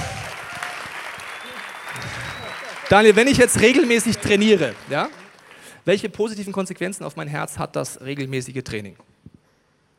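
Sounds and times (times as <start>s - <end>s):
audience applause: 0.0s - 5.8s
speech: 2.0s - 5.2s, 5.8s - 9.1s.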